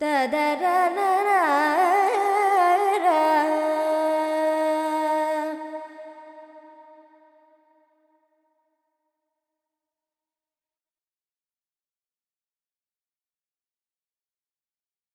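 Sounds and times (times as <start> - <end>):
Carnatic female vocal alap in Lydian mode with effects: 0.0 - 7.3.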